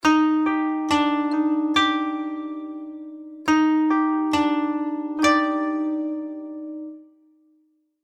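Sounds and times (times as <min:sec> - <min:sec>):
koto: 0:00.0 - 0:07.1.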